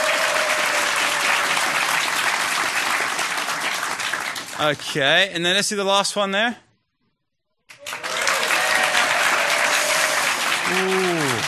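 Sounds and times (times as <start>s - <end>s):
audience applause: 0.0s - 4.8s, 7.7s - 11.4s
speech: 4.6s - 6.6s.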